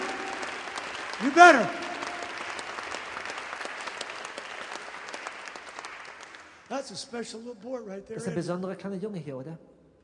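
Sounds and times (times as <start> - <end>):
applause: 0.0 - 7.0
speech: 1.2 - 1.8, 6.7 - 9.7.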